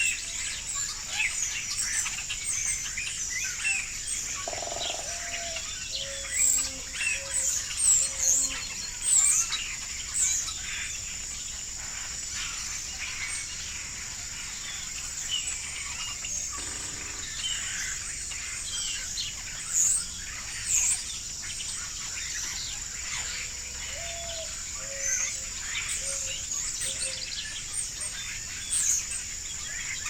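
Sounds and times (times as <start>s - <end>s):
birds dawn chorus on a farm in early morning: 0.0s - 30.0s.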